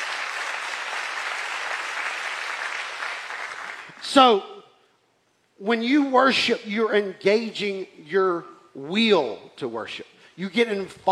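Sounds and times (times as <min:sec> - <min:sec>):
crowd clapping: 0:00.0 - 0:04.0
speech: 0:04.0 - 0:04.5, 0:05.6 - 0:11.1.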